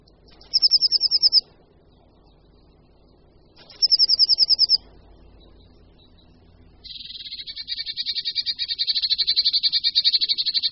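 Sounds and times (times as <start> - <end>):
Eurasian blue tit trilling: 0.3 - 1.4, 3.6 - 10.7.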